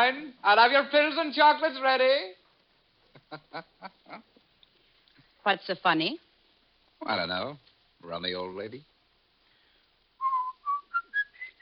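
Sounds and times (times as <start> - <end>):
speech: 0.1 - 2.4, 3.3 - 4.3, 5.4 - 6.2, 7.0 - 8.9
person whistling a song: 10.2 - 11.5.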